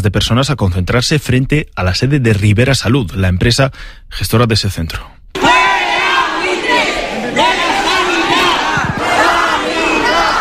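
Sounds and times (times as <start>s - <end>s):
speech: 0.0s - 5.2s
protest crowd chanting a slogan: 5.4s - 10.3s.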